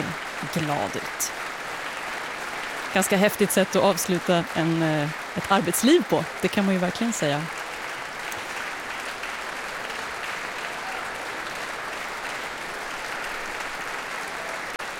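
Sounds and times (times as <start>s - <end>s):
concert audience applauding orchestra: 0.0s - 14.9s
speech: 0.5s - 1.5s, 2.9s - 7.6s.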